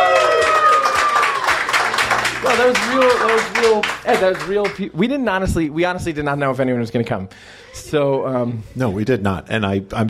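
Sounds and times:
live audience applause and cheering: 0:00.0 - 0:04.8
speech: 0:02.6 - 0:10.0.

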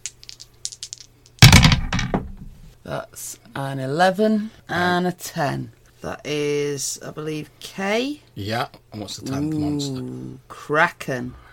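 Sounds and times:
dice being rolled: 0:00.0 - 0:02.5
speech: 0:02.9 - 0:11.4.

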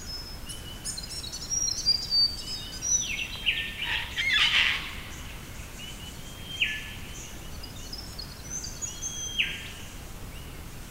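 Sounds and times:
birds whistling and trilling along the Isabella River in the early morning: 0:00.0 - 0:04.9, 0:05.8 - 0:09.8
low hiss of background noise: 0:00.0 - 0:10.9.

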